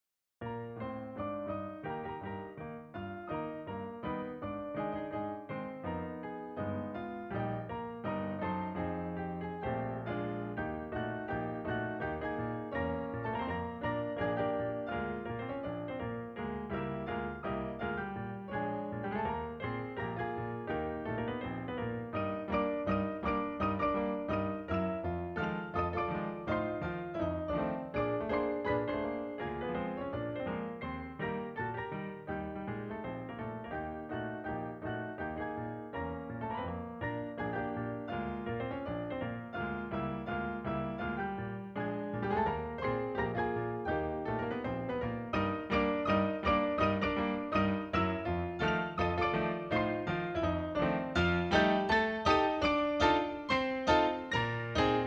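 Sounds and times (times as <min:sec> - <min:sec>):
foxtrot piano melody: 0:00.4 - 0:55.0.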